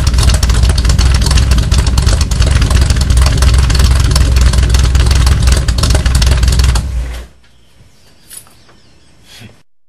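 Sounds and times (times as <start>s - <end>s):
Datsun 280Z car engine: 0.0s - 7.4s.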